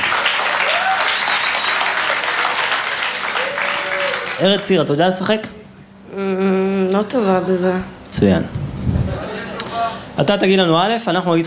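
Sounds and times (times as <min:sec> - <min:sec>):
audience applause: 0:00.0 - 0:04.7
speech: 0:04.4 - 0:09.0, 0:10.2 - 0:11.4.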